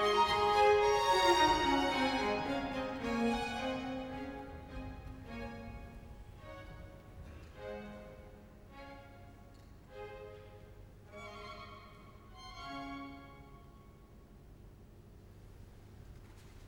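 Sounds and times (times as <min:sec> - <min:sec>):
choir singing: 0:00.0 - 0:04.1.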